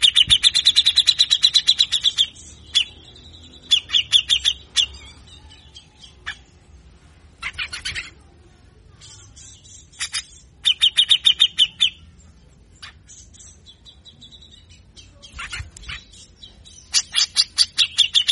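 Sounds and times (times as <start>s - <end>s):
grey-cheeked bulbul rasping chatter: 0.0s - 5.4s, 7.4s - 8.2s, 9.1s - 12.0s, 14.7s - 18.2s.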